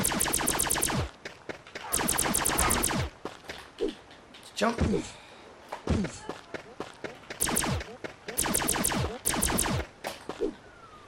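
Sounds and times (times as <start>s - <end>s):
video game gunfire: 0.0s - 1.2s, 1.8s - 3.4s, 7.2s - 10.5s
speech: 4.6s - 5.2s, 6.0s - 6.4s.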